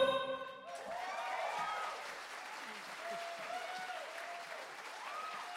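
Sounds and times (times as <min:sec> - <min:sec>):
shouts and whoops: 0:00.7 - 0:02.1, 0:03.0 - 0:05.5
audience clapping: 0:00.7 - 0:05.5.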